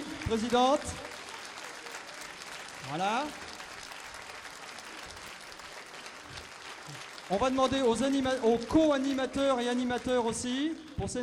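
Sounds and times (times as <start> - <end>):
audience applause: 0.0 - 11.2
speech: 0.3 - 1.1, 2.9 - 3.4, 6.9 - 11.2.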